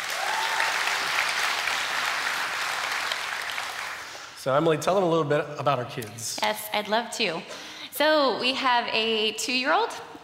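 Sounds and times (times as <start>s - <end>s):
audience applause welcoming a speaker: 0.0s - 4.4s
speech: 4.4s - 10.2s.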